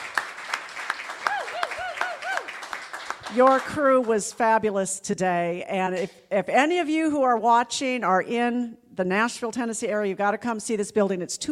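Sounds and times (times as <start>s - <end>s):
audience applause: 0.0s - 4.1s
scattered cheers: 1.2s - 2.6s
speech: 3.3s - 11.5s.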